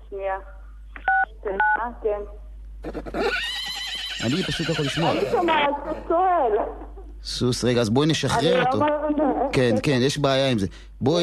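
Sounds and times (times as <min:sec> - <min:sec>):
speech: 0:00.1 - 0:00.6, 0:01.4 - 0:03.6, 0:04.2 - 0:11.2
phone keypad dual-pitch beeps: 0:01.0 - 0:01.8.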